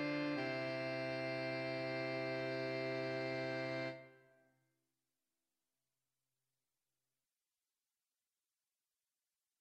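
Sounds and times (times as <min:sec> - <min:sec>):
saxophone quartet: 0:00.0 - 0:04.1.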